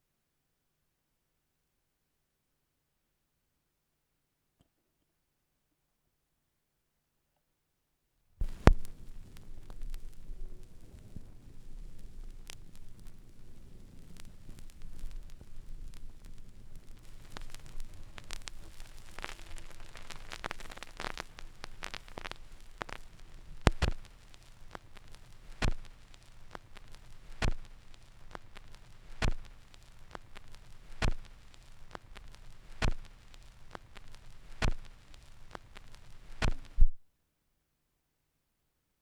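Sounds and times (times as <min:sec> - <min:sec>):
vinyl record noise: 0:08.4 - 0:37.0.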